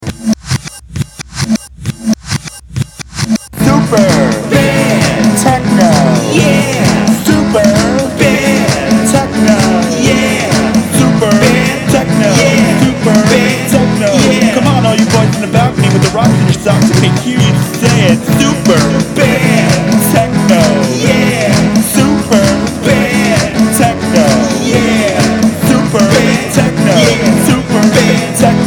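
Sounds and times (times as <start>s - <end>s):
techno music: 0.0s - 28.6s.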